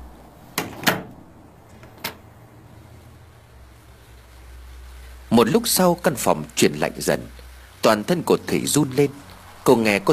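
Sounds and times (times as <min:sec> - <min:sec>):
shutter latch dropping into place: 0:00.6 - 0:01.2
wooden window shutter pulled closed with clacks: 0:00.6 - 0:01.2
speech: 0:05.4 - 0:10.1.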